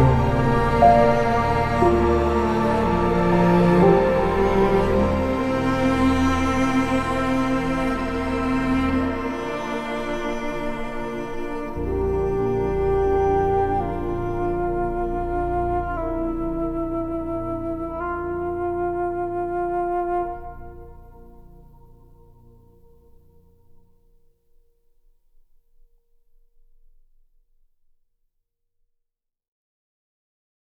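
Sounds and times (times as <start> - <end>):
orchestral piano score: 0.0 - 23.9.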